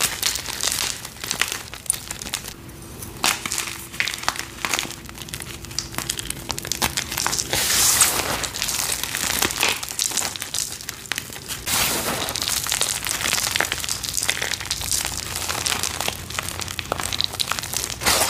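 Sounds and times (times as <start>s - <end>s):
gym chalk being crushed: 0.0s - 18.2s.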